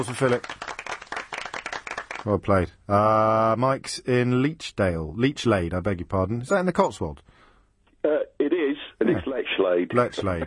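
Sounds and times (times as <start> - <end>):
speech: 0.0 - 0.7, 2.2 - 7.3, 8.0 - 8.3, 9.1 - 10.4
applause: 0.0 - 2.6.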